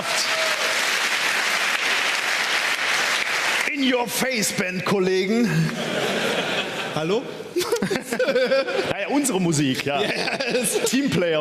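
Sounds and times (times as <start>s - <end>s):
audience of about 1000 people applauding at a band's show: 0.0s - 4.5s
speech: 3.8s - 11.3s
laughter: 5.4s - 11.3s.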